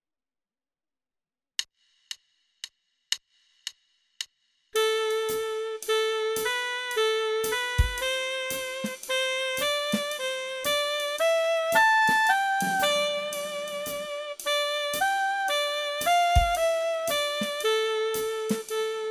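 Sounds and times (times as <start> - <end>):
melody: 4.8 - 19.0.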